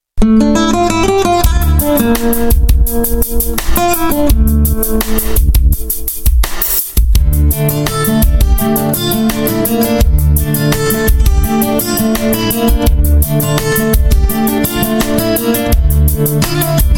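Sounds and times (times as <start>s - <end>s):
guitar: 0.2s - 16.9s.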